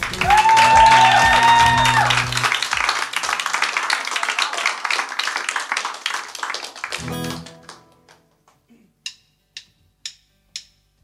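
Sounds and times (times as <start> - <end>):
audience applause: 0.0 - 8.2.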